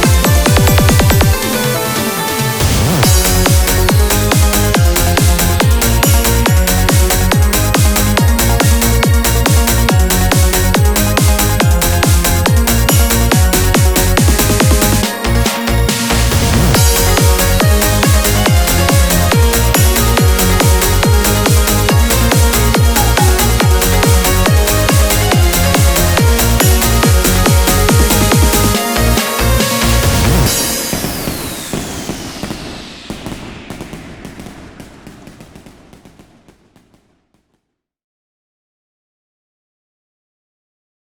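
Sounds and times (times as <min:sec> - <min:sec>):
off vocal instrumental music: 0:00.0 - 0:32.4.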